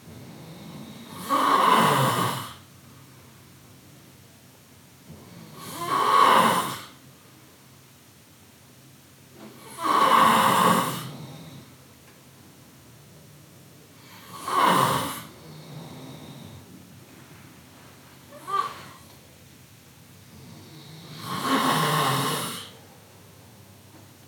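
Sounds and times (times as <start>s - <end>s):
person snoring: 0.6s - 2.6s, 5.5s - 7.0s, 9.6s - 11.7s, 14.1s - 16.6s, 18.3s - 19.1s, 20.4s - 22.8s.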